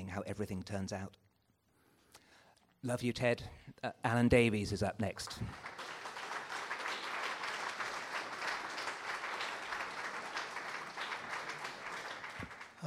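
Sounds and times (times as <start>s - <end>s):
speech: 0.2s - 1.2s, 2.8s - 5.8s
audience applause after poetry reading: 5.3s - 12.8s.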